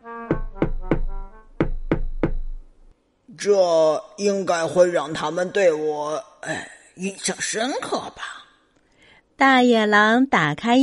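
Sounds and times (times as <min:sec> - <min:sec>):
knocking on a farm door: 0:00.3 - 0:02.6
speech: 0:03.4 - 0:08.3, 0:09.4 - 0:10.8.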